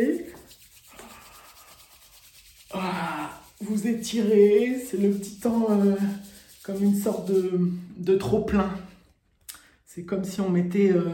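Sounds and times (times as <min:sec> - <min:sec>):
hands rubbing together: 0:00.0 - 0:07.6
speech: 0:02.7 - 0:08.9, 0:10.0 - 0:11.1.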